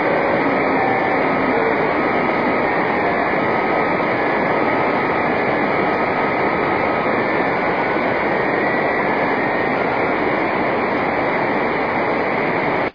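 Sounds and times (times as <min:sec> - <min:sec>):
10G JT65C airplane beacon signal: 0:00.0 - 0:12.6.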